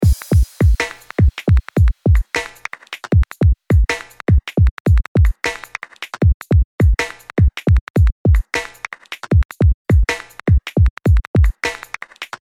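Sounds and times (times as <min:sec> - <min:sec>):
drum: 0:00.0 - 0:12.4.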